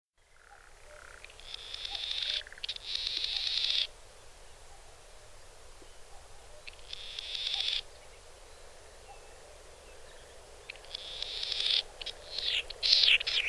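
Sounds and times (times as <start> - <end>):
Latham's snipe calling in Nagano, Japan: 0.4 - 3.9, 6.2 - 7.9, 10.7 - 13.4.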